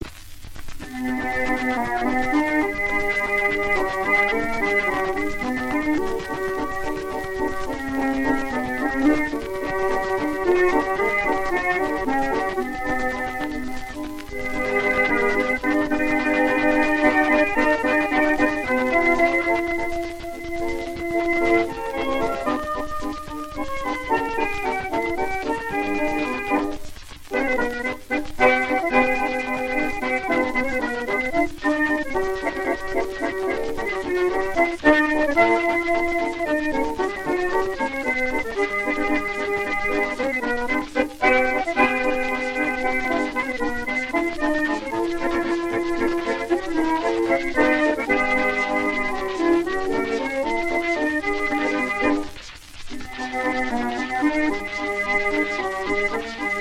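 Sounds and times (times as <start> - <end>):
waltz music: 0.9 - 56.5.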